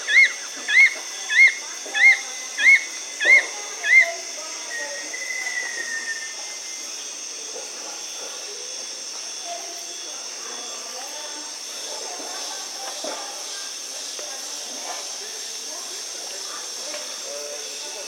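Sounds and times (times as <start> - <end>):
fulvous-chinned nunlet calling in South America: 0.0 - 6.5.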